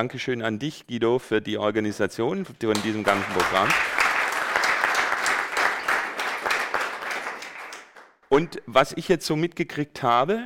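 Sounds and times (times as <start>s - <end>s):
speech: 0.0s - 4.0s, 8.4s - 10.4s
audience applause: 2.8s - 8.2s.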